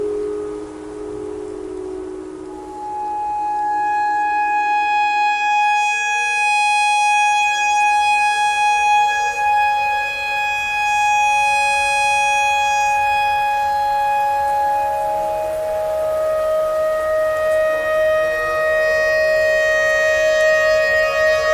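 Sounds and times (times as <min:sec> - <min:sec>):
clarinet notes in E pentatonic: 0:00.0 - 0:21.5
tornado siren: 0:00.0 - 0:21.5.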